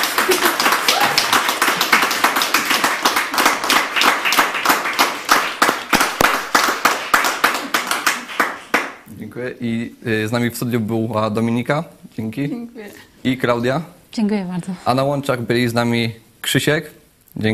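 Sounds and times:
several people clapping in a small room: 0:00.0 - 0:09.1
speech: 0:09.4 - 0:17.5.

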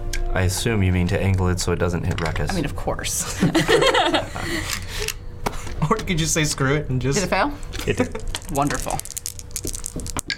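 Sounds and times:
speech: 0:00.4 - 0:05.2, 0:05.8 - 0:09.0
many dice rolling into a dice tray: 0:08.0 - 0:10.3.

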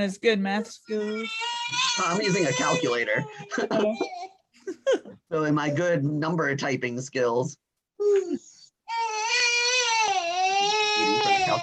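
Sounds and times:
speech: 0:00.0 - 0:08.5, 0:11.0 - 0:11.6
baby crying: 0:00.9 - 0:04.4, 0:08.9 - 0:11.6
laughter: 0:01.9 - 0:05.2.

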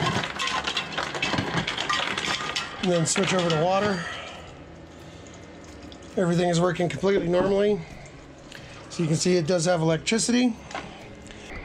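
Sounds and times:
ice cubes tumbling from a refrigerator dispenser: 0:00.0 - 0:04.1
speech: 0:02.8 - 0:04.2, 0:06.2 - 0:08.0, 0:09.0 - 0:10.7.

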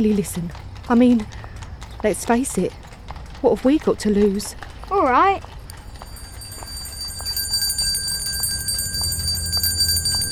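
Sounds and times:
speech: 0:00.0 - 0:02.8, 0:03.4 - 0:05.6
bell ringing: 0:05.7 - 0:10.2.

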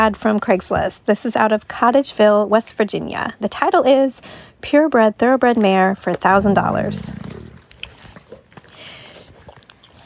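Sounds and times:
speech: 0:00.0 - 0:07.2
pet pig grunting and snorting: 0:06.2 - 0:08.5.

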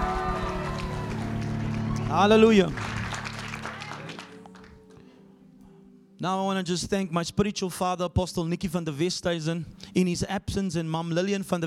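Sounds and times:
audience applauding: 0:00.0 - 0:05.0
speech: 0:02.1 - 0:02.9, 0:06.2 - 0:11.6.

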